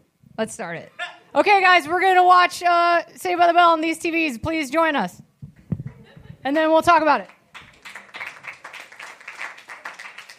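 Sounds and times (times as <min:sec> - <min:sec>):
speech: 0:00.4 - 0:05.2, 0:06.4 - 0:07.4
small group clapping: 0:07.2 - 0:10.3.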